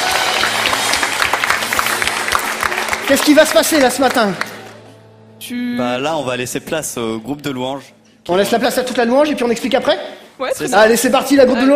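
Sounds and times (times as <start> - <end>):
audience applauding loudly: 0.0 - 4.9
speech: 3.1 - 4.5, 5.4 - 11.7.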